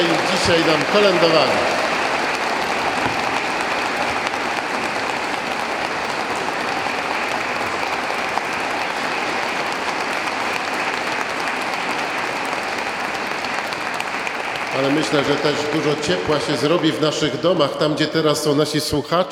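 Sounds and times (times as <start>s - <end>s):
speech: 0.0s - 1.8s, 14.8s - 19.3s
audience applause: 0.0s - 18.4s.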